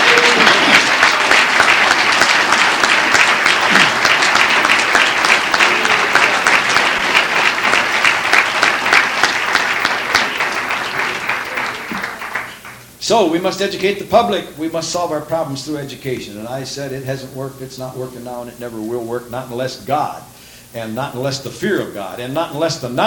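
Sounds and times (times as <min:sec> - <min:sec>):
audience applause: 0:00.0 - 0:12.8
speech: 0:13.1 - 0:23.0.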